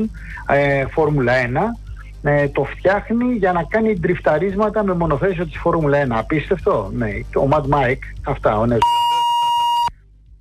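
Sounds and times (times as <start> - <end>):
speech: 0.0 - 9.1
telephone beep: 8.8 - 9.9.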